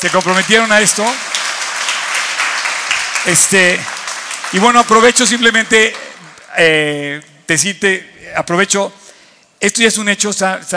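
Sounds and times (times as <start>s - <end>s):
speech: 0.0s - 1.4s, 3.2s - 6.0s, 6.6s - 9.0s, 9.6s - 10.7s
audience applause: 0.0s - 6.5s.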